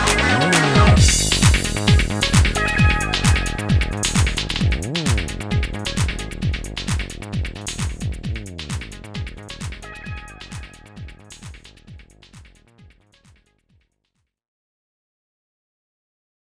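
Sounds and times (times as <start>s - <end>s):
stage music: 0.0s - 8.0s, 9.0s - 11.7s.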